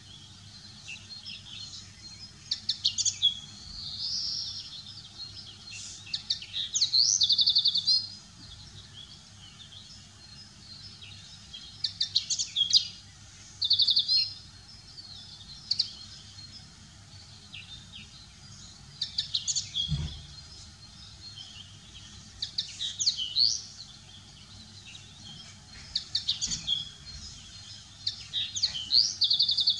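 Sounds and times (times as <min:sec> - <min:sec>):
common linnet twittering song: 0:00.0 - 0:29.7.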